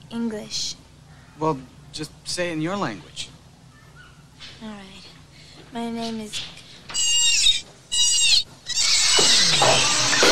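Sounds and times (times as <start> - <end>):
speech: 0.1 - 0.8, 1.4 - 3.3, 5.7 - 6.6
voice imitating a high-pitched dolphin screech: 6.9 - 10.2.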